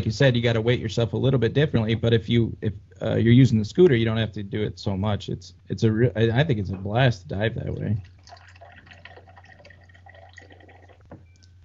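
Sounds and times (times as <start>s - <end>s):
speech: 0.0s - 8.4s
water being poured to top off a glass: 8.0s - 11.6s.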